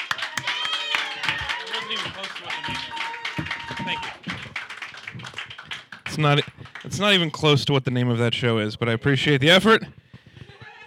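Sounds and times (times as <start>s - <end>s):
audience clapping to welcome a comedian onstage: 0.0s - 7.7s
speech: 1.8s - 4.4s, 6.2s - 10.0s.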